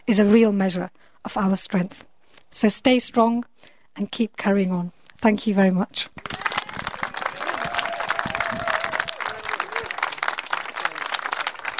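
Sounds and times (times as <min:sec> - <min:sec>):
speech: 0:00.1 - 0:06.4
audience applause after a speech: 0:06.2 - 0:11.7.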